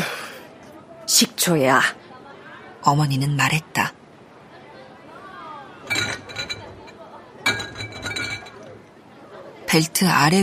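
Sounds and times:
faint murmur of voices: 0.0 - 10.4
speech: 1.1 - 2.0, 2.8 - 4.0, 9.7 - 10.4
liquor bottles in crates clinking together: 5.9 - 8.7.

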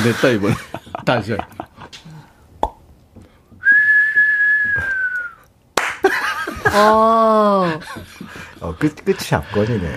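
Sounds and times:
speech: 0.0 - 1.6, 6.7 - 9.9
laughter: 0.0 - 2.2, 6.0 - 9.9
person whistling to imitate a firework: 3.6 - 5.4.

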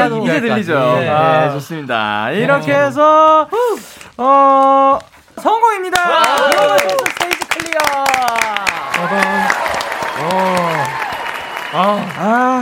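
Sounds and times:
speech: 0.3 - 8.4, 10.2 - 11.0, 11.7 - 12.6
audience applause: 5.9 - 12.6.

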